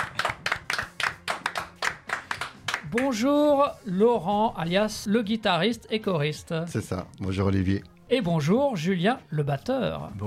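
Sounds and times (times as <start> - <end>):
rhythmic applause for two musicians from a tribute band: 0.0 - 3.2
speech: 2.9 - 10.2.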